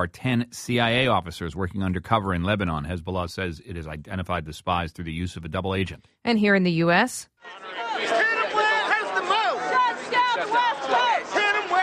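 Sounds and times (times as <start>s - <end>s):
speech: 0.0s - 8.4s, 10.4s - 11.4s
Occupy protesters chanting outside a Port of Seattle facility: 7.4s - 11.8s.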